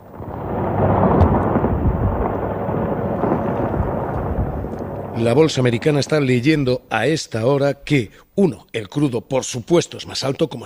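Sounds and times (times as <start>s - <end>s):
missiles exploding in a war: 0.0s - 6.9s
speech: 5.2s - 10.6s.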